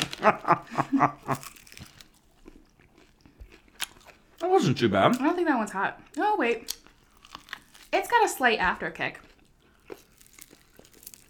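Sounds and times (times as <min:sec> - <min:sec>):
crunchy chewing while eating: 0:00.0 - 0:04.5, 0:06.0 - 0:08.1, 0:09.1 - 0:11.2
speech: 0:00.2 - 0:01.2, 0:04.7 - 0:06.8, 0:08.1 - 0:09.2.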